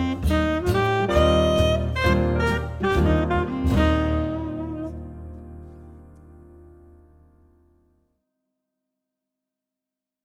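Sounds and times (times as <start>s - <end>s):
saxophone and piano jazz: 0.0s - 7.5s.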